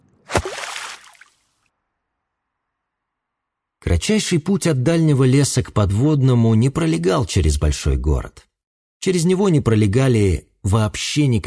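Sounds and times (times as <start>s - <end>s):
aquarium water sloshing and bubbling: 0.0s - 1.6s
heavy splash as someone plops into murky aquarium water: 0.3s - 1.3s
speech: 3.8s - 11.4s.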